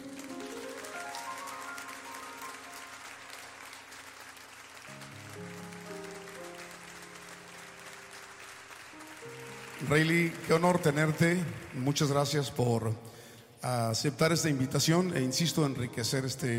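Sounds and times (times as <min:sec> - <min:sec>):
audience applause: 0:00.0 - 0:12.6
speech: 0:09.9 - 0:16.5.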